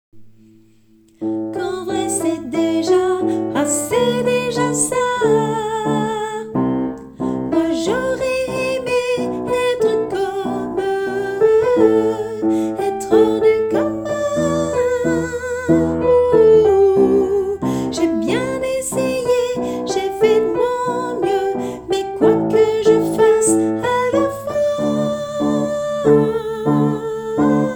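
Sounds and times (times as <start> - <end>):
soprano singing: 1.2 - 27.7.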